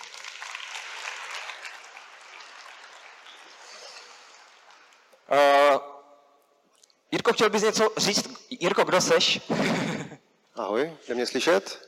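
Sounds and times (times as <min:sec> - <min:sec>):
audience applause: 0:00.0 - 0:04.9
speech: 0:05.3 - 0:05.6, 0:07.3 - 0:09.9, 0:10.8 - 0:11.8
laughter: 0:09.2 - 0:10.2.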